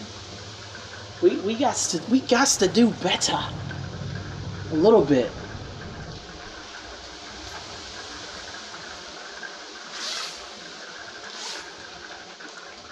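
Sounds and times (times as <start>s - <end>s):
rumbling hiss: 0.0s - 12.9s
speech: 1.2s - 3.7s, 4.7s - 5.4s
zipper rasps from a trampoline enclosure net being zipped up: 9.9s - 10.6s, 11.3s - 11.9s.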